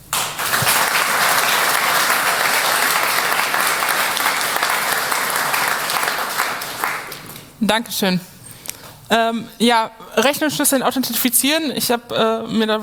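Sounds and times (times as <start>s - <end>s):
audience applause: 0.0s - 7.6s
speech: 7.7s - 8.3s, 9.1s - 12.8s.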